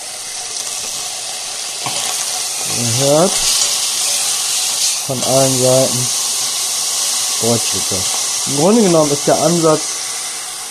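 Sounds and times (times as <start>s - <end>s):
vegetables sizzling in a hot pan: 0.0s - 10.6s
speech: 2.7s - 3.7s, 5.1s - 6.2s, 7.4s - 10.0s.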